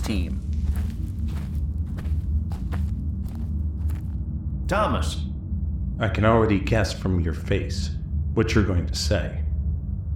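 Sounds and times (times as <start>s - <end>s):
footsteps walking out of an office toward a mine entrance: 0.0s - 4.3s
constant low rumble: 0.0s - 10.1s
speech: 0.1s - 0.5s, 4.7s - 5.3s, 6.0s - 9.4s.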